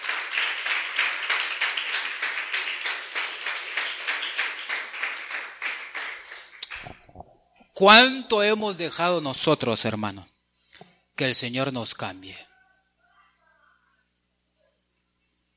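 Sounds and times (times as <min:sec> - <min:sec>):
crowd clapping rhythmically in applause for the Lord: 0:00.0 - 0:07.1
speech: 0:07.8 - 0:10.3, 0:11.2 - 0:12.5.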